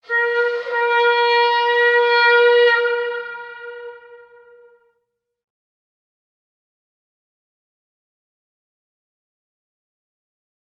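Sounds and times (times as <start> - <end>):
horn: 0.0 - 5.0.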